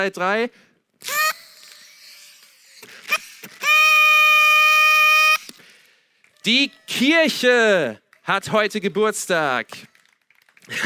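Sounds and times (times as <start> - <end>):
speech: 0.0 - 1.3, 6.4 - 9.9, 10.7 - 10.8
group of people tooting like trumpets: 1.0 - 1.8, 2.8 - 5.5.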